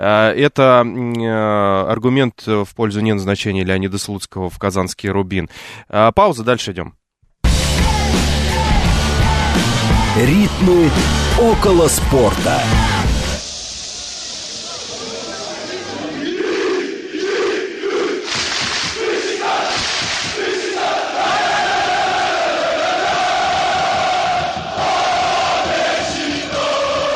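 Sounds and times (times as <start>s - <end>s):
speech: 0.0s - 7.0s, 10.1s - 13.0s
Beşiktaş fans roaring at Vodafone Park stadium in Istanbul: 7.5s - 13.4s, 14.2s - 27.1s.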